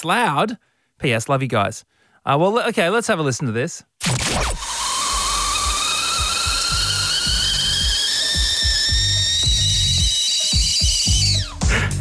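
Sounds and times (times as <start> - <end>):
speech: 0.0 - 4.7
high-pitched piercing whistle of a kettle: 4.5 - 11.9
steam hiss: 4.8 - 11.9.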